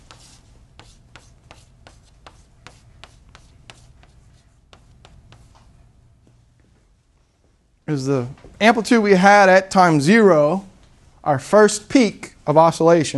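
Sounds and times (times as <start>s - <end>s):
handwriting pen strokes: 0.0s - 5.6s
speech: 7.9s - 13.1s.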